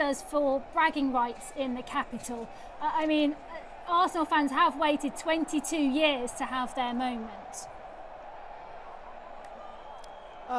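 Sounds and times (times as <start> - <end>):
speech: 0.0 - 7.8
crowd cheering from a balcony: 0.0 - 10.5.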